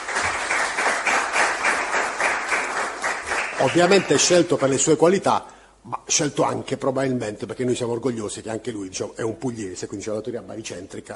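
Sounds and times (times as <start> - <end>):
audience applause: 0.0 - 4.8
speech: 3.6 - 11.1.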